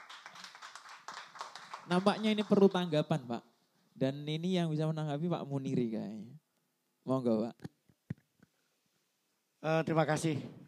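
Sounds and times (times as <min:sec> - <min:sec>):
audience applause: 0:00.0 - 0:02.9
speech: 0:01.9 - 0:06.4, 0:07.0 - 0:07.8, 0:09.6 - 0:10.6.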